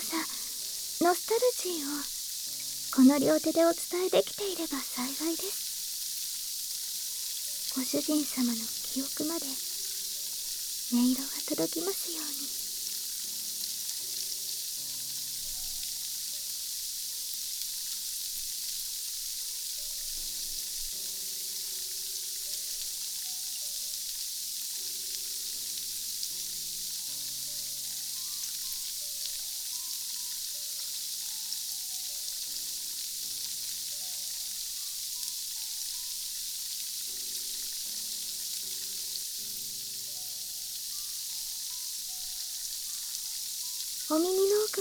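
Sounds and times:
fizzing, sizzling carbonated bubbles: 0.0s - 44.7s
speech: 1.0s - 2.2s, 3.0s - 5.6s, 7.8s - 9.7s, 10.9s - 12.6s, 44.1s - 44.5s.

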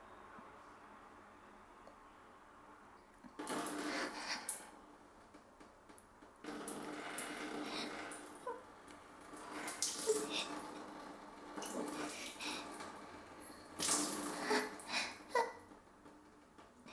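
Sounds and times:
dog urinating with leg raised in a bathroom: 3.4s - 5.4s, 6.5s - 16.5s.

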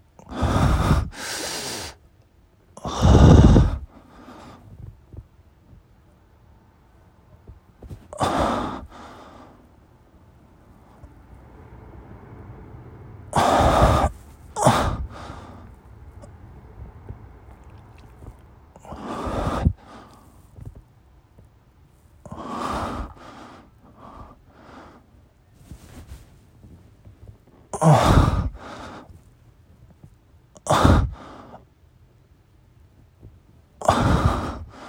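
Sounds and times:
breathing during masturbation: 0.2s - 2.0s, 2.8s - 4.9s, 7.9s - 9.8s, 13.4s - 20.8s, 22.3s - 26.3s, 28.2s - 29.2s, 31.0s - 31.6s, 33.9s - 34.8s
moaning during masturbation: 10.8s - 19.8s.

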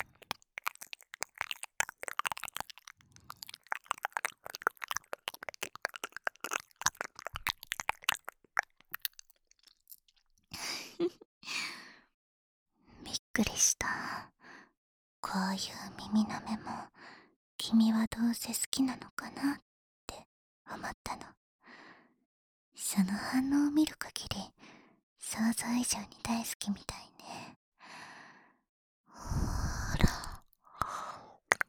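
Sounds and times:
ear licking: 0.0s - 10.1s, 29.9s - 30.5s
whispering in the ear: 13.0s - 14.3s, 15.2s - 17.0s, 17.6s - 21.4s, 22.8s - 24.6s, 25.3s - 27.5s, 29.3s - 31.6s.

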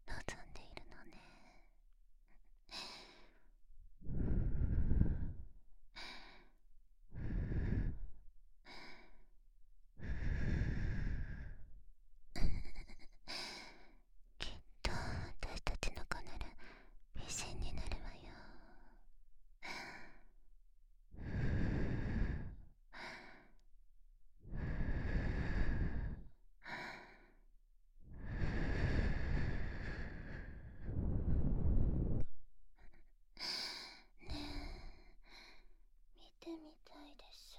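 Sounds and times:
whispering: 0.0s - 1.7s, 14.4s - 19.0s, 36.2s - 37.5s
breathing: 2.7s - 9.3s, 10.0s - 11.8s, 16.6s - 17.0s, 19.6s - 20.3s, 21.2s - 23.6s, 24.4s - 27.5s, 28.1s - 35.8s.

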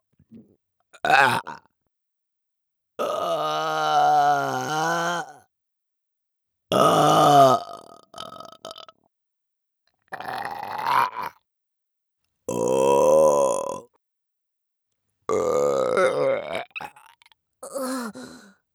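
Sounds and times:
person burping: 1.0s - 1.6s, 3.0s - 5.4s, 6.7s - 7.8s, 12.5s - 13.8s, 15.3s - 18.5s.

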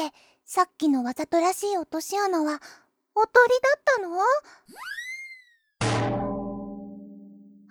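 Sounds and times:
speech: 0.0s - 5.0s
metal washtub dropping onto someone's head: 5.8s - 7.6s.

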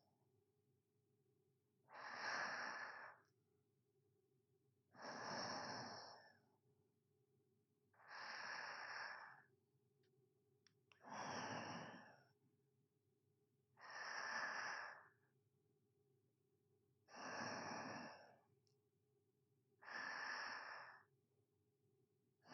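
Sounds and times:
sleeping breathing ASMR: 1.9s - 3.3s, 5.0s - 6.4s, 8.0s - 9.5s, 11.0s - 12.3s, 13.8s - 15.2s, 17.1s - 18.4s, 19.8s - 21.1s.

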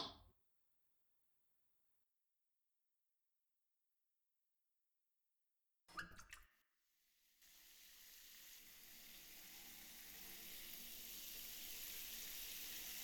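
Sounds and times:
shower water running on back: 7.4s - 13.0s.

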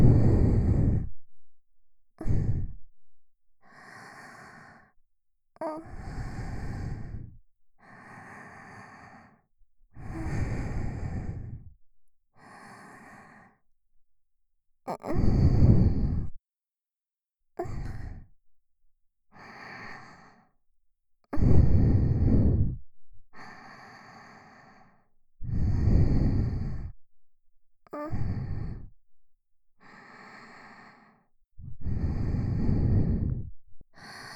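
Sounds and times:
sweet breathing loop: 0.0s - 1.5s, 2.2s - 2.9s, 3.6s - 5.0s, 5.6s - 11.8s, 12.4s - 13.7s, 14.9s - 16.4s, 17.6s - 18.3s, 19.3s - 20.6s, 21.3s - 27.0s, 27.9s - 29.1s, 29.8s - 34.3s.

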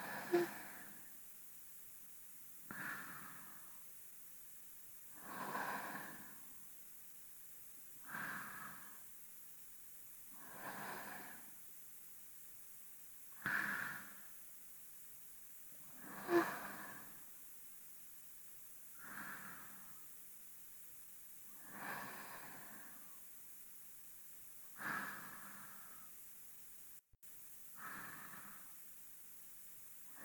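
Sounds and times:
person breathing in sleep, binaural: 0.0s - 1.2s, 2.6s - 3.9s, 5.1s - 6.7s, 8.0s - 9.1s, 10.3s - 11.6s, 13.3s - 14.4s, 15.8s - 17.4s, 18.8s - 20.2s, 21.4s - 23.4s, 24.7s - 26.2s, 27.7s - 30.2s.

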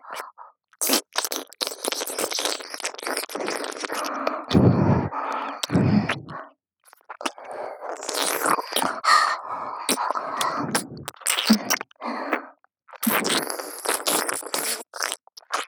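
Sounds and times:
licking both ears: 0.8s - 6.4s, 7.0s - 9.2s, 9.9s - 11.9s, 12.9s - 15.6s.

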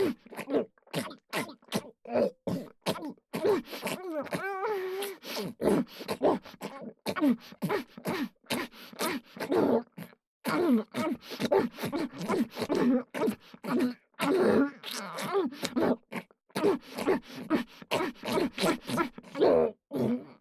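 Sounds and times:
deep-throat oral sex sounds: 0.0s - 19.4s.

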